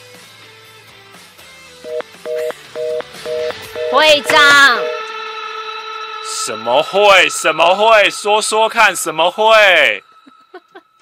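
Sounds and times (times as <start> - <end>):
telephone tones from a phone handset: 1.9 - 5.1
speech: 4.0 - 4.9, 6.5 - 10.1.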